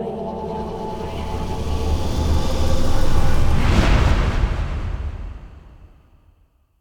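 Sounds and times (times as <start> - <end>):
cave intro stinger: 0.1 - 6.1.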